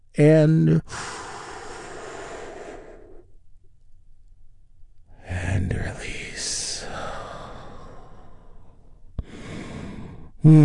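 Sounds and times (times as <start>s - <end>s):
speech: 0.2s - 1.1s, 10.4s - 10.6s
big deep breath during a guided relaxation exercise: 0.9s - 3.4s, 6.8s - 10.6s.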